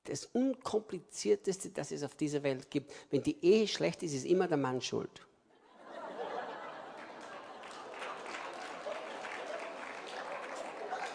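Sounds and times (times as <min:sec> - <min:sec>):
speech: 0:00.1 - 0:05.3
laughter: 0:05.6 - 0:11.1
women in an audience clapping: 0:06.8 - 0:11.1.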